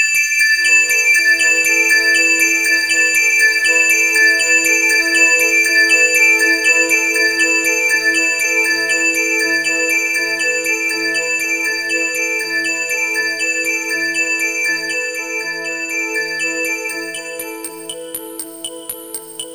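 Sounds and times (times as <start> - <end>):
bells ringing: 0.1 - 19.5.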